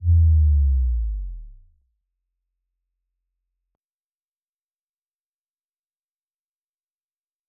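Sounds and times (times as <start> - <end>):
bass drop: 0.0 - 1.8.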